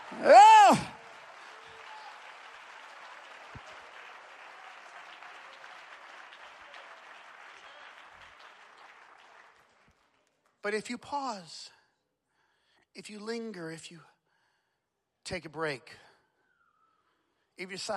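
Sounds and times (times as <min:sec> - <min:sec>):
audience clapping hands: 0:00.0 - 0:10.9
speech: 0:00.1 - 0:00.9, 0:10.6 - 0:11.8, 0:13.0 - 0:14.1, 0:15.3 - 0:16.1, 0:17.6 - 0:17.9.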